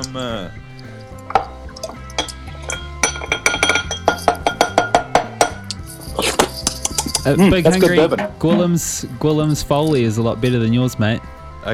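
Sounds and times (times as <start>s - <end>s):
speech: 0.1s - 0.7s, 7.2s - 11.7s
small rolling pin muddling plums in bourbon in a glass: 1.2s - 5.7s, 6.4s - 8.8s.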